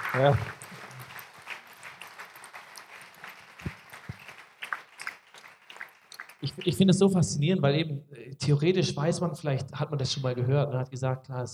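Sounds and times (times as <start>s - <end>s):
audience applauding: 0.0s - 6.8s
speech: 0.1s - 0.6s, 6.6s - 11.5s.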